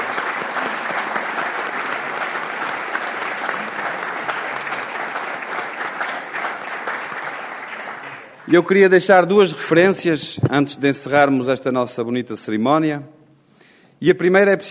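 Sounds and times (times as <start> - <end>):
audience applause: 0.0 - 8.8
speech: 8.5 - 13.2, 14.0 - 14.6.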